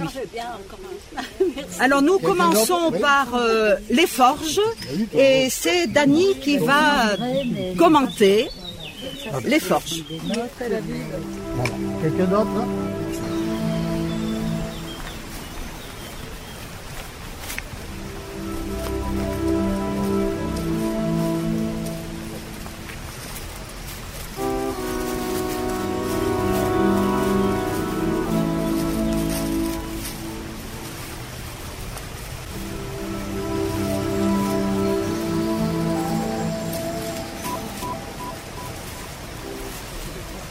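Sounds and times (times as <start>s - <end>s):
speech: 0.0s - 13.2s
river water flowing: 0.0s - 40.5s.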